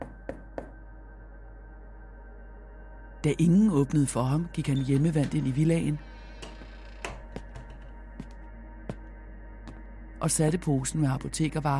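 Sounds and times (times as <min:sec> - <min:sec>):
knocking on front door: 0:00.0 - 0:00.8, 0:06.4 - 0:07.9
speech: 0:03.2 - 0:06.1, 0:10.2 - 0:11.7.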